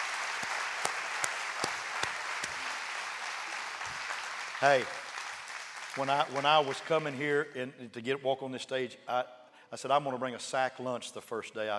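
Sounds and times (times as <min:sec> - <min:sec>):
crowd applauding: 0:00.0 - 0:07.2
speech: 0:04.6 - 0:05.0, 0:06.0 - 0:11.7.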